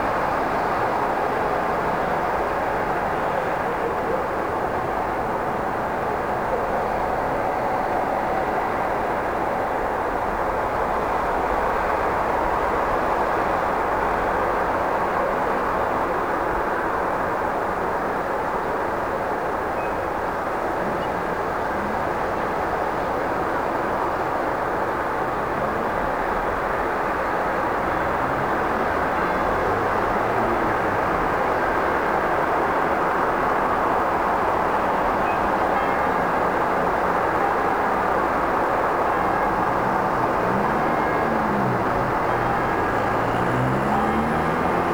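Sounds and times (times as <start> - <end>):
Stockholm daytime city ambience: 0.0 - 44.9.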